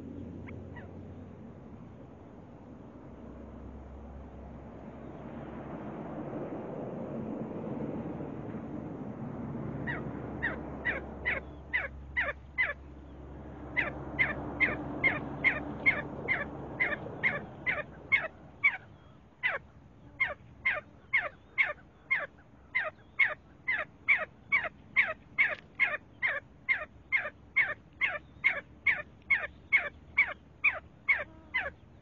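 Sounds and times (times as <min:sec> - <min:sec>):
low background hum: 0:00.0 - 0:32.0
See-see partridge down-slurred calls: 0:09.9 - 0:12.8, 0:13.8 - 0:32.0.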